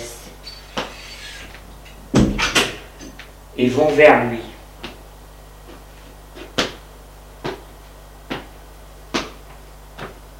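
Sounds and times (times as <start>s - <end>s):
door opening: 0.4s - 2.8s
speech: 3.6s - 4.5s.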